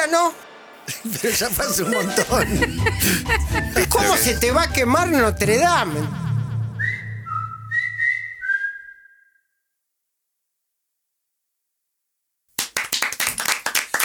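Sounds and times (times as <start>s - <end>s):
speech: 0.0s - 6.2s
energetic clapping from a group in studio: 0.1s - 4.8s, 12.6s - 14.0s
laughter: 0.8s - 6.8s
low pulsing hum: 5.2s - 8.2s
loud shrill whistles from studio: 6.4s - 9.6s.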